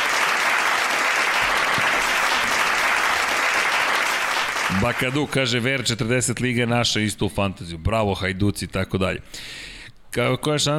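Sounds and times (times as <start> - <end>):
radio show audience applauding a guest: 0.0 - 5.4
speech: 4.8 - 10.7.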